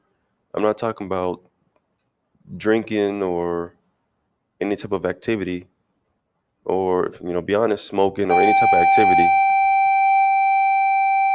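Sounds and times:
speech: 0.6 - 1.5, 2.5 - 3.8, 4.6 - 5.7, 6.6 - 9.5
school bell ringing: 8.3 - 11.3.

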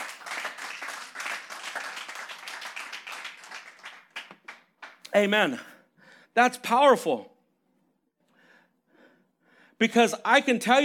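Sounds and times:
audience applause: 0.0 - 5.0
speech: 5.2 - 5.7, 6.4 - 7.3, 9.8 - 10.8.

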